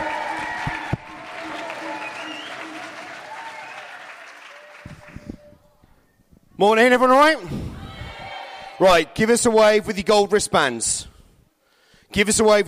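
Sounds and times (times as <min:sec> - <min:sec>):
crowd applause: 0:00.0 - 0:05.5
crowd cheering: 0:00.0 - 0:05.6, 0:07.8 - 0:09.2
speech: 0:06.6 - 0:07.8, 0:08.8 - 0:11.1, 0:12.1 - 0:12.6.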